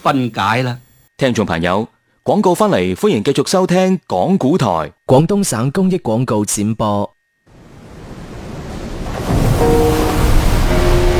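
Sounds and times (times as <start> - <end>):
speech: 0.0 - 7.2
ocean waves surging under the Hong Kong-Zhuhai-Macau Bridge: 7.5 - 11.1.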